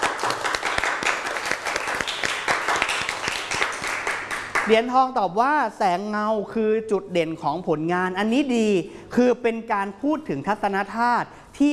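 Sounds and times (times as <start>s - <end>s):
classroom group clapping for a student: 0.0s - 4.9s
speech: 4.7s - 11.7s.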